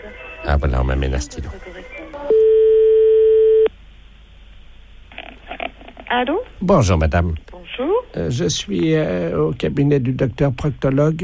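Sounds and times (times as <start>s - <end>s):
speech: 0.0s - 1.9s, 6.1s - 11.2s
telephone ringback tone on an outgoing call: 2.3s - 3.7s.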